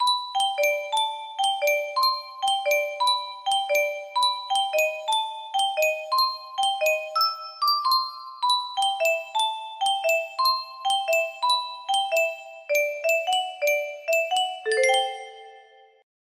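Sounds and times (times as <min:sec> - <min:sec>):
music box melody: 0:00.0 - 0:16.0.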